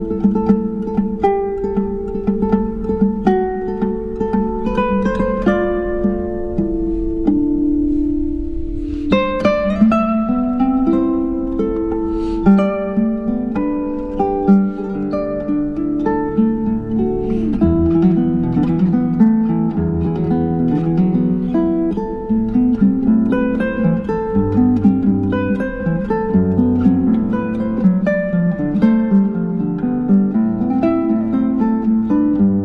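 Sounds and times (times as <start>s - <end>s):
guitar: 0.0s - 32.6s.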